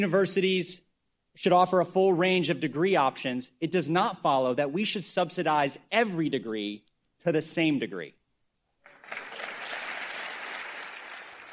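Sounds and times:
speech: 0.0 - 0.8, 1.4 - 8.2
applause from legislators in chamber: 8.8 - 11.5.

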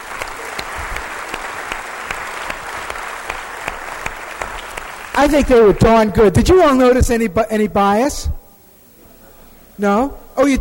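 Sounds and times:
audience applause for a class: 0.0 - 6.1
speech: 5.2 - 8.4, 9.8 - 10.5.

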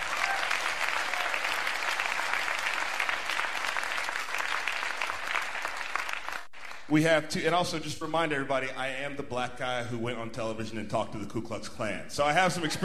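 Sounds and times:
crowd applauding: 0.0 - 6.9
speech: 6.9 - 12.8.

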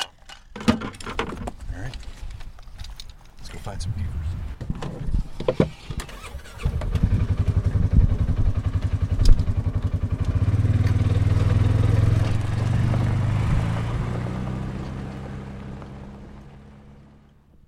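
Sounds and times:
speech: 3.7 - 5.7
small all-terrain vehicle engine driving: 4.7 - 17.6.

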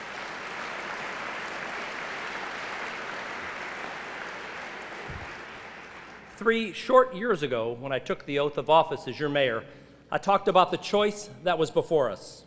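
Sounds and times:
audience applause: 0.0 - 6.4
speech: 6.4 - 12.4.

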